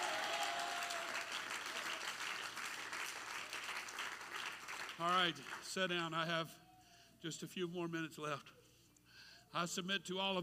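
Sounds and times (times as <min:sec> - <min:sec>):
audience clapping hands: 0:00.0 - 0:05.7
speech: 0:05.0 - 0:06.6, 0:07.2 - 0:08.6, 0:09.5 - 0:10.4.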